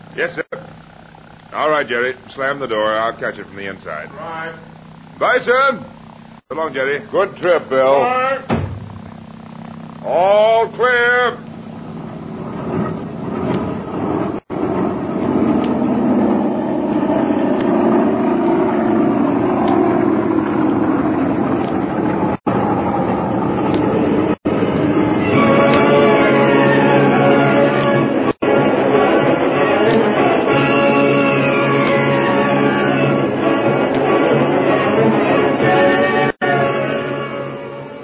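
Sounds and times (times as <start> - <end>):
passenger airliner engine whine: 0.0 - 38.0
speech: 0.2 - 0.4, 1.5 - 8.5, 10.0 - 11.4
big passenger airliner engine roar taking off from a concrete runway: 10.0 - 38.0.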